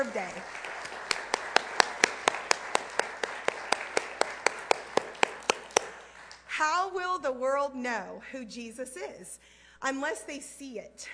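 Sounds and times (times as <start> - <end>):
audience rhythmic clapping: 0.0 - 6.5
faint hiss: 0.0 - 11.1
speech: 6.9 - 11.1.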